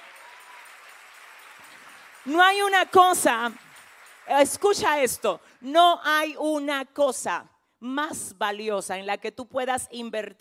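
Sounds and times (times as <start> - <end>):
audience applause: 0.0 - 4.8
speech: 2.2 - 3.6, 4.3 - 10.3.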